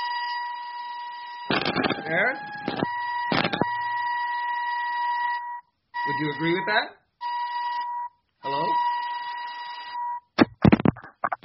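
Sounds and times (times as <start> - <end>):
electronic warning beep like a truck backing up: 0.0 - 10.3
speech: 1.5 - 3.0, 6.1 - 7.0, 8.4 - 8.9.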